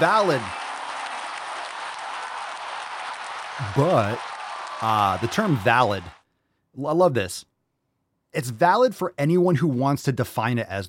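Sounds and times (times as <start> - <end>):
speech: 0.0 - 0.6, 3.6 - 6.2, 6.8 - 7.5, 8.3 - 10.8
crowd applause: 0.0 - 6.2.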